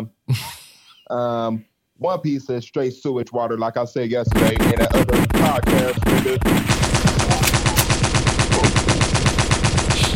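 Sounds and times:
speech: 1.1s - 6.7s
automatic gunfire burst: 4.3s - 10.1s.

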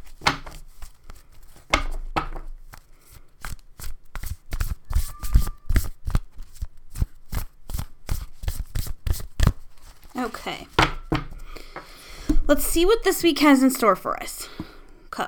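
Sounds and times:
deck of cards being shuffled: 0.0s - 11.0s
speech: 10.2s - 10.8s, 12.5s - 14.4s.

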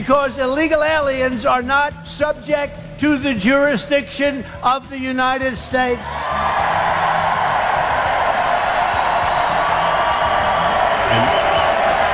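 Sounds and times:
speech: 0.0s - 6.9s
rally crowd cheering: 6.0s - 12.1s.

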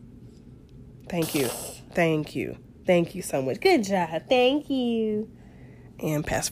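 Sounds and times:
speech: 1.1s - 5.4s, 6.0s - 6.5s
toddler blowing her nose: 1.2s - 1.9s.

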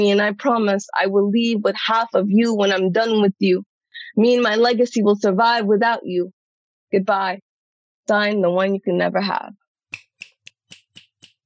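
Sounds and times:
speech: 0.0s - 7.5s, 8.1s - 9.6s
finger snapping: 9.9s - 11.4s.

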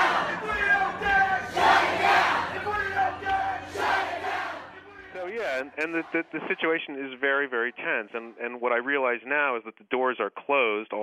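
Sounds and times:
protesters chanting: 0.0s - 8.3s
speech: 5.8s - 11.0s.

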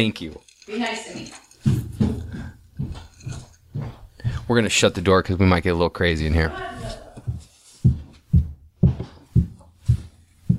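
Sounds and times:
speech: 0.0s - 1.8s, 4.5s - 7.0s
high heels walking up a staircase: 1.4s - 4.8s, 6.5s - 10.5s.

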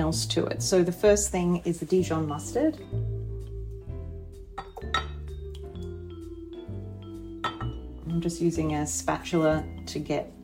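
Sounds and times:
speech: 0.1s - 3.1s, 8.2s - 10.4s
whisk clinking against a glass measuring cup: 4.6s - 5.2s, 7.4s - 7.8s.

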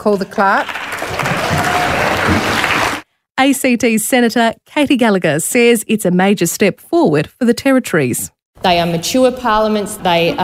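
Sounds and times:
speech: 0.0s - 2.7s, 3.4s - 10.4s
applause in the Senate chamber: 0.6s - 3.1s.

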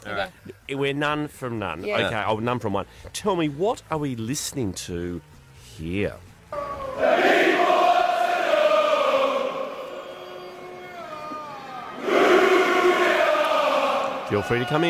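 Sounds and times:
speech: 0.1s - 6.3s, 14.3s - 14.8s
cricket test match crowd chanting: 6.5s - 14.8s.

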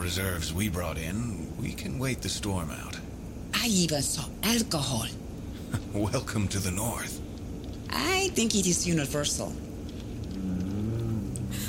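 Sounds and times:
speech: 0.1s - 3.0s, 3.6s - 7.2s, 7.9s - 9.7s
polar bear growl: 10.3s - 11.6s.

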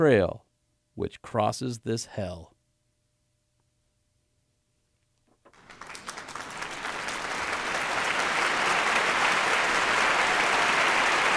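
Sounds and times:
speech: 0.0s - 0.4s, 1.0s - 2.5s
applause: 5.5s - 11.3s.

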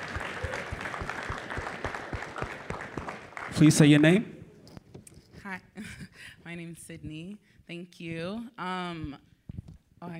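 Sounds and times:
audience applause: 0.0s - 4.3s
speech: 3.6s - 4.3s, 6.9s - 9.3s, 10.0s - 10.1s.

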